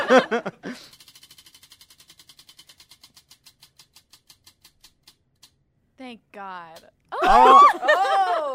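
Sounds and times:
laughter: 0.0s - 0.9s, 7.2s - 8.5s
speech: 0.1s - 1.0s, 6.1s - 8.0s
spinning wheel clicking: 0.7s - 5.6s.

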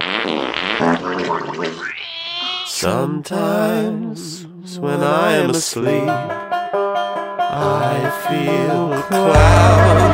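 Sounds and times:
fart: 0.0s - 2.7s
speech: 2.8s - 6.5s, 7.5s - 10.1s.

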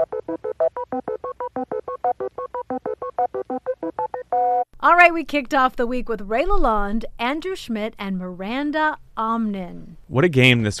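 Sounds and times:
electronic beep boop tones: 0.0s - 4.7s
speech: 5.0s - 10.7s.

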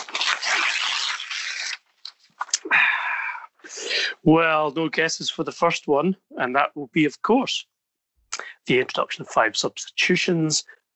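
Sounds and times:
envelope being opened, rustling and tearing: 0.0s - 2.5s
speech: 4.2s - 7.7s, 8.4s - 10.8s.

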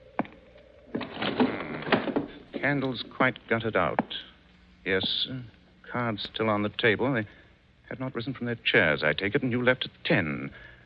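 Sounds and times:
window being closed: 0.9s - 2.4s
speech: 2.6s - 10.7s.

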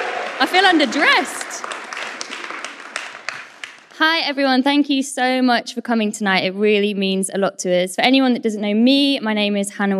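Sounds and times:
audience applause: 0.0s - 4.0s
speech: 0.4s - 1.7s, 4.0s - 9.9s.

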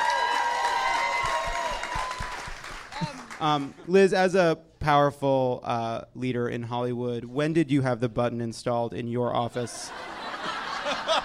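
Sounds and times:
audience applause: 0.0s - 3.8s
laughter: 2.8s - 3.9s, 9.5s - 11.2s
speech: 3.0s - 10.1s.

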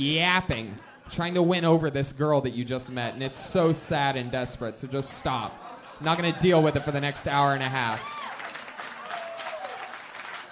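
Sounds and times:
speech: 0.0s - 8.2s
laughter: 2.8s - 8.1s
audience applause: 6.2s - 10.5s.

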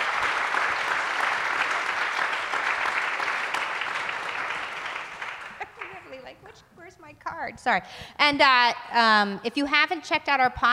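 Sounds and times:
audience applause: 0.0s - 6.2s
speech: 7.5s - 10.7s.

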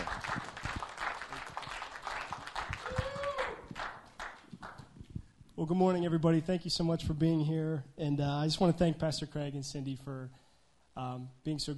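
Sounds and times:
church congregation applauding a new youth pastor: 0.0s - 4.9s
speech: 5.6s - 10.4s, 11.0s - 11.7s.

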